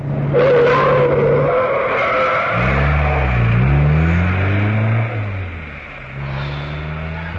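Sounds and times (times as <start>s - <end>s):
car engine roaring: 0.0s - 7.3s
tires screeching as a car swerves: 0.0s - 7.3s.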